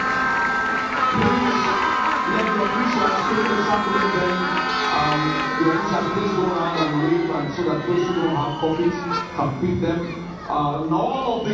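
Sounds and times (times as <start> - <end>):
audience clapping and cheering: 0.0 - 9.2
many voices shouting: 0.0 - 9.4
sustained musical tone: 0.0 - 9.8
speech: 5.2 - 11.5.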